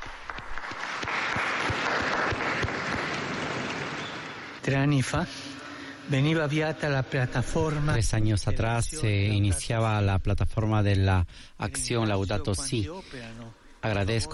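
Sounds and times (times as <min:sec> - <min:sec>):
crowd applause: 0:00.0 - 0:04.6
speech: 0:04.7 - 0:14.3.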